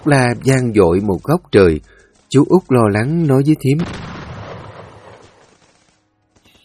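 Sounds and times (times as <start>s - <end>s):
speech: 0.0s - 4.0s
rapid gunfire: 0.0s - 6.1s
bomb explosions: 3.1s - 5.8s.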